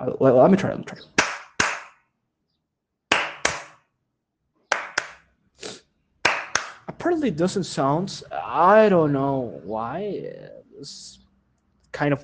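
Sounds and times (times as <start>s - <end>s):
speech: 0.0s - 1.2s, 7.1s - 11.2s, 11.9s - 12.2s
hand claps to trigger phone app: 1.1s - 2.0s, 3.1s - 3.8s, 4.7s - 5.2s, 6.2s - 6.9s.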